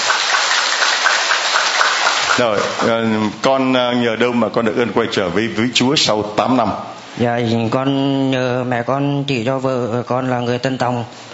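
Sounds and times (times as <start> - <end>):
audience applause: 0.0 - 3.0
speech: 2.4 - 11.3.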